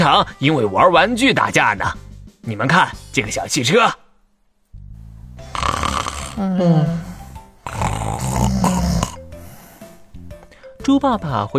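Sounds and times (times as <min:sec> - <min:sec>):
speech: 0:00.0 - 0:04.0, 0:06.4 - 0:07.1, 0:10.9 - 0:11.5
snoring: 0:04.8 - 0:10.2.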